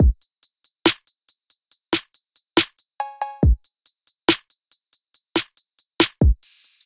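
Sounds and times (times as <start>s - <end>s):
drum kit: 0.0s - 6.8s.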